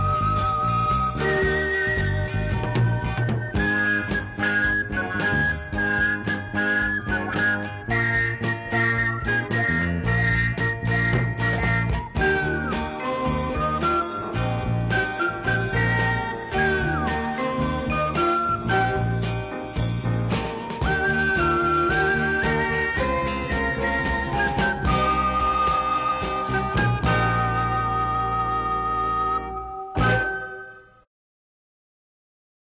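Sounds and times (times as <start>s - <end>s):
Spanish flute rock music: 0.0s - 31.1s.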